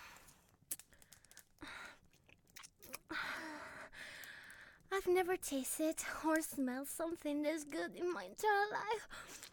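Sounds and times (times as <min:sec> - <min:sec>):
chewing and biting in a roleplay of eating a human: 0:02.1 - 0:03.0
speech: 0:05.1 - 0:09.4.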